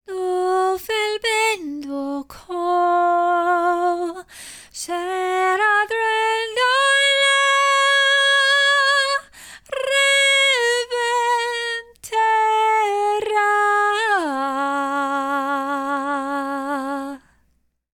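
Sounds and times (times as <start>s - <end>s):
phantom singing: 0.1s - 17.3s.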